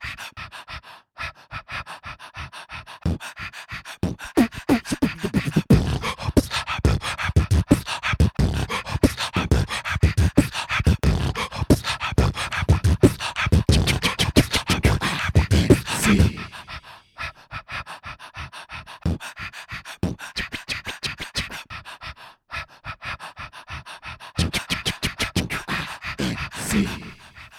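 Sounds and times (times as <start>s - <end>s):
beatboxing: 3.0s - 16.8s, 19.0s - 21.7s, 24.4s - 27.5s.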